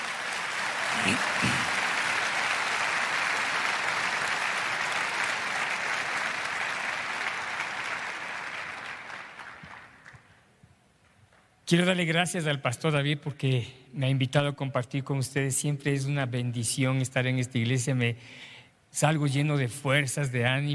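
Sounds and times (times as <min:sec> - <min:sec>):
audience applause: 0:00.0 - 0:10.3
speech: 0:11.7 - 0:20.7.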